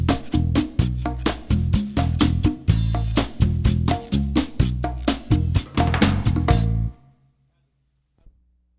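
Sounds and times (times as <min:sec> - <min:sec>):
latin big band music: 0:00.0 - 0:07.0.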